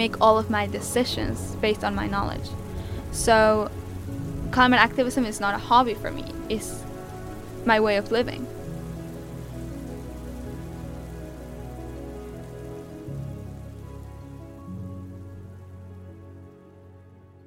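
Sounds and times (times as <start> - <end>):
speech: 0.0 - 3.8, 4.5 - 6.8, 7.6 - 8.6
heavy rain drumming on surfaces: 0.0 - 16.8.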